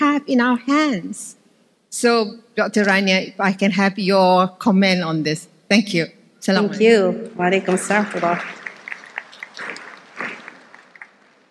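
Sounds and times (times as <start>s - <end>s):
speech: 0.2s - 8.6s
audience applause: 7.6s - 11.4s.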